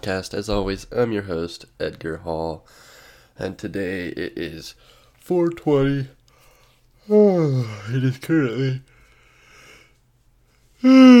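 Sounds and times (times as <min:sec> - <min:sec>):
speech: 0:00.0 - 0:06.2, 0:07.1 - 0:08.9, 0:10.8 - 0:11.1
person yawning: 0:07.1 - 0:07.9, 0:10.8 - 0:11.1.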